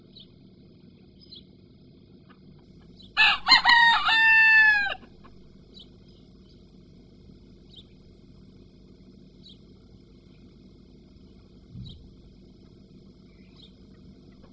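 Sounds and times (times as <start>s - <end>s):
chicken clucking and squawking: 3.2s - 5.4s.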